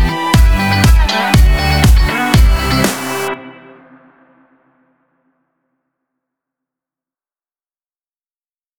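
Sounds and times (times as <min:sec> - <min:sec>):
summer sport fashion dance music: 0:00.0 - 0:04.7.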